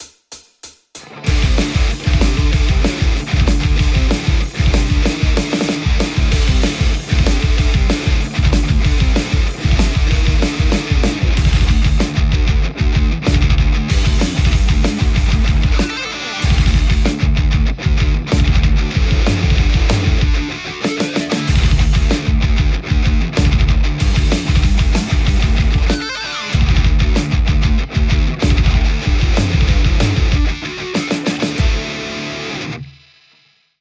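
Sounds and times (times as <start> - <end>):
Les Paul electric guitar playing metal: 1.0 - 33.5.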